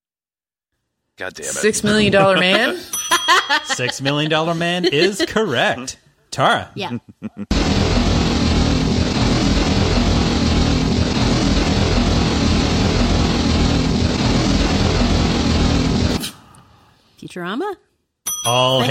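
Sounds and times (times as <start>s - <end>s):
speech: 1.2s - 8.0s, 17.3s - 18.8s
laughter: 1.5s - 5.7s, 7.1s - 7.5s
motorcycle engine: 7.5s - 16.2s.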